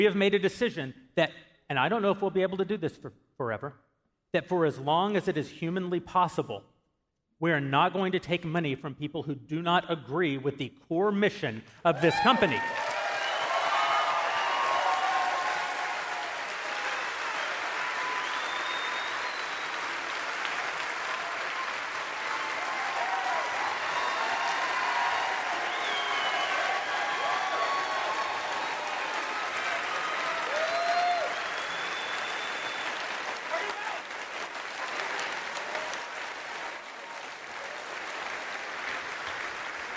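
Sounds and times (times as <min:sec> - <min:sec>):
speech: 0:00.0 - 0:06.7, 0:07.4 - 0:12.9
faint cheers and murmurs: 0:12.0 - 0:38.3
audience applause: 0:12.0 - 0:39.9.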